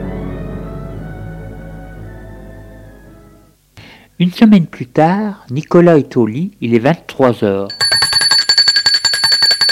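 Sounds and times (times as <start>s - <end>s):
speech: 4.2s - 7.9s
doorbell ringing: 7.7s - 9.6s.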